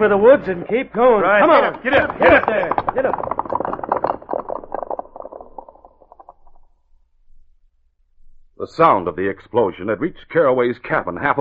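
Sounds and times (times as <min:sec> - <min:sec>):
speech: 0:00.0 - 0:03.8, 0:08.6 - 0:11.4
horses galloping away: 0:00.0 - 0:06.6.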